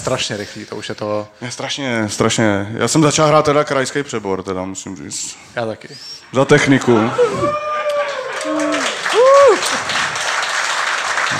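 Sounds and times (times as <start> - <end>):
speech: 0.0 - 7.7, 8.5 - 10.1
applause: 7.9 - 11.3.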